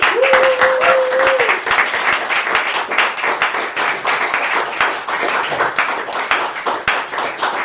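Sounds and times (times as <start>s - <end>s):
audience applause: 0.0s - 7.6s.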